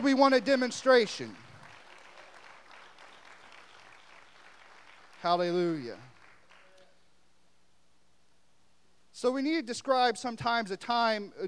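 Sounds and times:
speech: 0:00.0 - 0:01.4, 0:05.2 - 0:06.1, 0:09.2 - 0:11.4
audience clapping hands in praise: 0:00.0 - 0:07.0.

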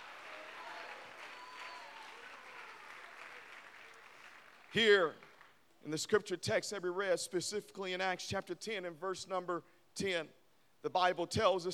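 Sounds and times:
audience clapping: 0:00.0 - 0:05.6
speech: 0:04.7 - 0:05.2, 0:05.8 - 0:11.7.

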